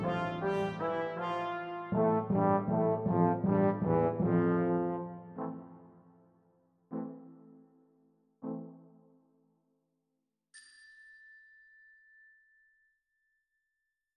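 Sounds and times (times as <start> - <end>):
brass instruments: 0.0 - 6.3, 6.9 - 7.6.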